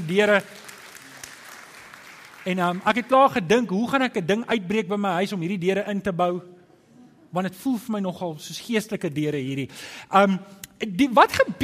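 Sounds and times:
audience applause: 0.0 - 3.2
speech: 0.1 - 0.6, 2.4 - 6.6, 7.3 - 11.6.

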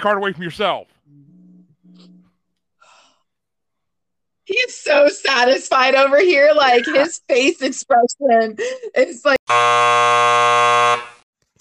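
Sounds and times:
speech: 0.0 - 1.2, 4.6 - 11.1
game show buzzer: 9.5 - 11.2.

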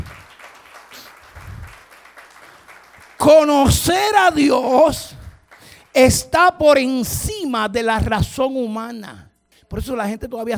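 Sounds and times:
audience applause: 0.0 - 5.9
speech: 3.2 - 5.1, 6.0 - 10.5.

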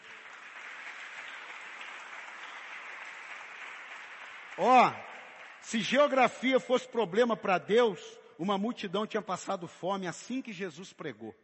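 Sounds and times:
crowd applauding: 0.0 - 6.6
speech: 4.6 - 5.0, 5.6 - 11.4.

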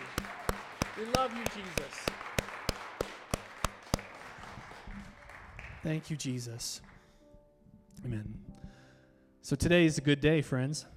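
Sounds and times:
audience clapping: 0.0 - 7.1
speech: 1.0 - 2.2, 5.8 - 6.9, 8.0 - 8.4, 9.5 - 10.9.

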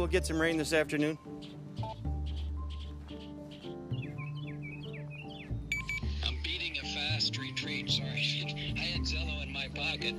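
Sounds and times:
speech: 0.0 - 1.6, 7.7 - 10.1
bird singing outdoors: 1.1 - 7.0.

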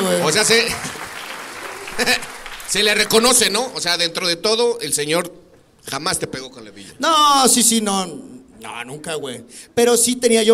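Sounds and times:
applause: 0.0 - 3.9
speech: 0.2 - 0.9, 2.0 - 10.5
laughter: 0.5 - 2.6.

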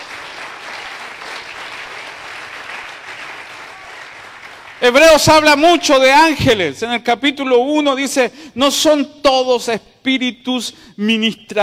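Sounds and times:
audience applause: 0.0 - 4.9
speech: 4.8 - 11.6.

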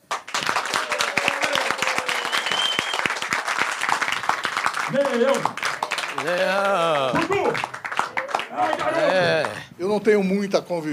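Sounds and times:
audience applause: 0.0 - 9.7
faint whistles and cheers: 0.6 - 3.3
speech: 4.9 - 7.8, 8.5 - 10.9.

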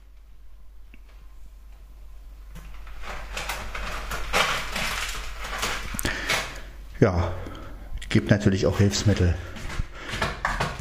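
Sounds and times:
cat scratching in litter box: 2.5 - 6.7
speech: 7.0 - 7.4, 8.1 - 9.6.

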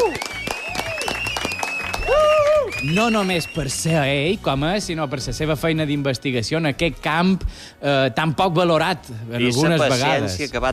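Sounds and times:
audience applause: 0.0 - 3.9
whoops and cheering voices: 0.0 - 3.9
speech: 2.8 - 10.7.

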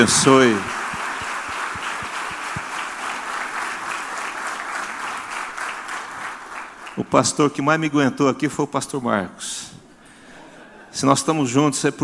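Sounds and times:
speech: 0.0 - 0.8, 7.1 - 9.8, 11.0 - 12.0
audience applauding: 0.0 - 7.0.

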